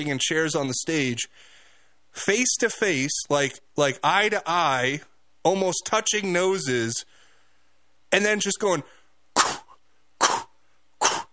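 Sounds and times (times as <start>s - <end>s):
speech: 0.0s - 7.1s, 8.1s - 9.0s
voice imitating a fake sneeze: 9.3s - 11.3s.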